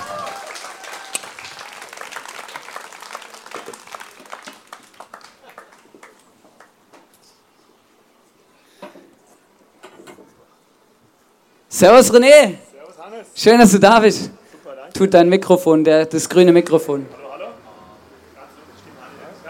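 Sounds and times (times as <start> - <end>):
audience applause: 0.0 - 6.8
speech: 11.8 - 12.6, 13.4 - 14.4, 15.0 - 17.2.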